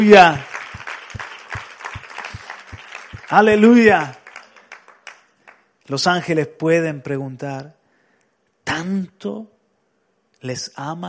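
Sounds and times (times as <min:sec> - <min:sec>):
speech: 0:00.0 - 0:00.5, 0:03.3 - 0:04.2, 0:05.9 - 0:07.8, 0:08.7 - 0:09.5, 0:10.4 - 0:11.0
audience applauding: 0:00.0 - 0:05.7.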